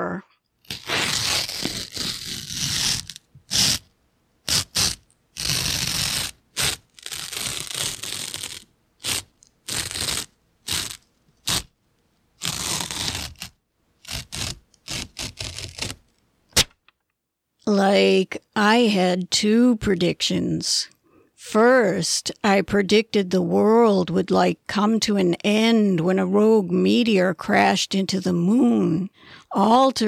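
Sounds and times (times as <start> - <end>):
paper envelope torn open: 0.6 - 11.7, 12.4 - 16.1
speech: 17.7 - 30.0.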